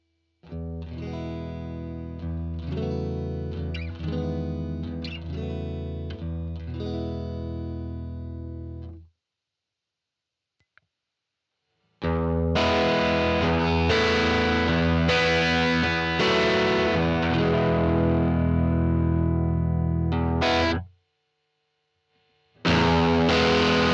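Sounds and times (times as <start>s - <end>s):
guitar chords through VALETON Dapper Indie drive: 0.5s - 9.0s, 12.0s - 20.9s, 22.6s - 23.9s.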